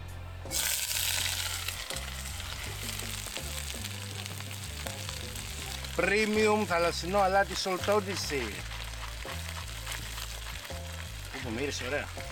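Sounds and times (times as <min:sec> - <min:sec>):
vegetables sizzling in hot oil in a wok: 0:00.5 - 0:12.3
faint scraping stirs in a wok: 0:04.6 - 0:12.3
speech: 0:06.0 - 0:08.7, 0:11.5 - 0:12.3.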